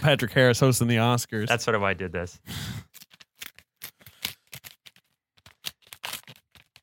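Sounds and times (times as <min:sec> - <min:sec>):
speech: 0:00.0 - 0:03.0
envelope being torn open: 0:02.9 - 0:06.8.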